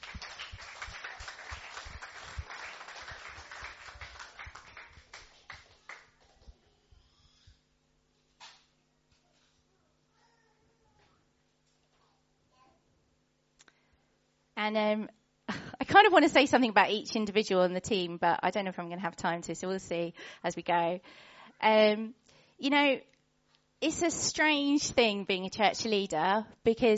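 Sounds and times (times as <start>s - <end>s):
small group clapping for the team: 0.0s - 6.6s
speech: 14.6s - 15.2s, 16.0s - 23.1s, 23.8s - 26.9s.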